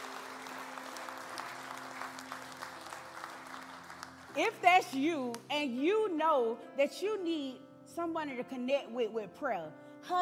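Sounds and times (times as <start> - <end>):
audience applause: 0.0 - 4.4
speech: 4.4 - 10.2.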